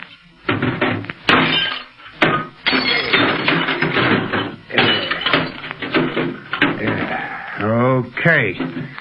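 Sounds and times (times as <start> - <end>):
short wave radio set being smashed: 0.5 - 7.1
speech: 8.2 - 8.9.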